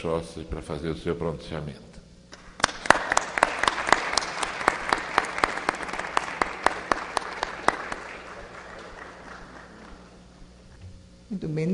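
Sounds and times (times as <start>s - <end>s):
speech: 0.0s - 2.0s, 11.4s - 11.7s
audience applause: 2.6s - 10.5s.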